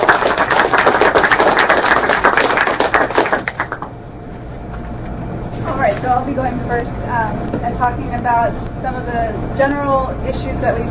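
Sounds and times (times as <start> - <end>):
round of applause for panelists: 0.0 - 4.0
speech: 6.4 - 10.8.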